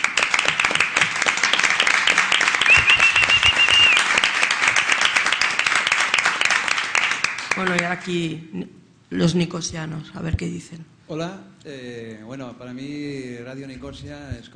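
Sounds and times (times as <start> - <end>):
audience applause: 0.0 - 8.0
speech: 7.6 - 14.5.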